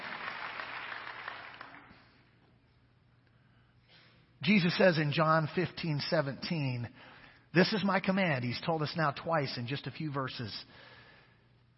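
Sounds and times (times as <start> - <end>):
audience hand clap: 0.0 - 2.2
speech: 4.4 - 10.9.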